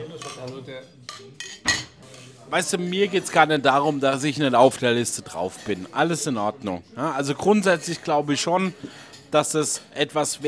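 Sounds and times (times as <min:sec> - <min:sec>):
low murmur: 0:00.0 - 0:10.4
speech: 0:00.4 - 0:10.4
glasses clinking in a toast: 0:01.1 - 0:02.3.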